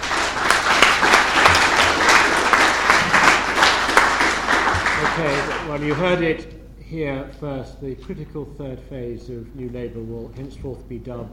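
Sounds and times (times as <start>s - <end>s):
audience applause for a panel: 0.0s - 6.2s
speech: 5.8s - 11.3s.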